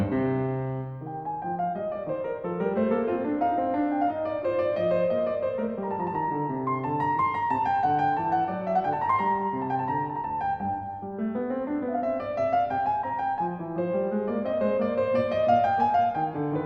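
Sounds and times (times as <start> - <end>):
baroque keyboard suite movement on piano: 0.0 - 16.6.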